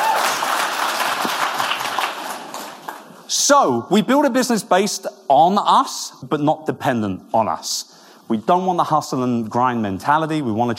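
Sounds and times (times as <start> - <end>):
audience applause: 0.0 - 3.2
speech: 3.5 - 10.7.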